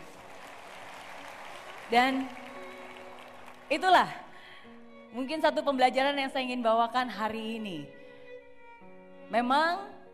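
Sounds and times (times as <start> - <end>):
audience applause: 0.0 - 3.9
speech: 1.9 - 2.4, 3.7 - 4.2, 5.1 - 8.0, 9.3 - 10.1.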